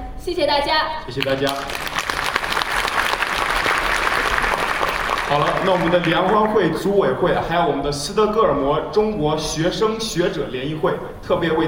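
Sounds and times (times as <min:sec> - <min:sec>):
speech: 0:00.2 - 0:02.0, 0:05.3 - 0:11.6
audience applause: 0:01.2 - 0:06.9.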